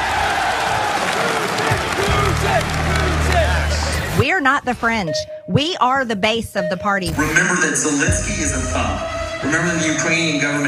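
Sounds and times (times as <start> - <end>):
crowd applause: 0.0 - 4.2
speech: 4.4 - 10.6.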